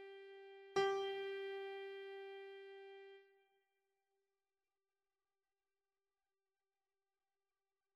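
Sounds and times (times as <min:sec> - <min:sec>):
keyboard music: 0:00.0 - 0:03.2.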